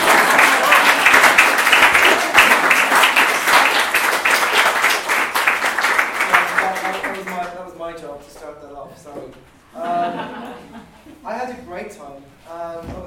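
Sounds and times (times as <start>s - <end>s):
sustained audience applause: 0.0s - 7.6s
laughter: 9.8s - 11.2s.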